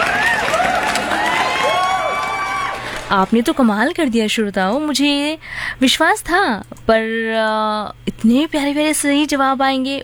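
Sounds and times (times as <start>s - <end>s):
crowd applauding: 0.0s - 3.6s
speech: 3.1s - 10.0s.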